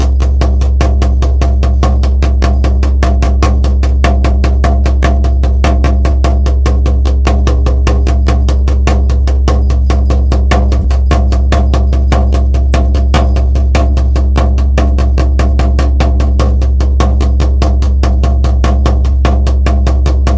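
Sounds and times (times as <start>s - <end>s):
fast drumming: 0.0s - 20.3s.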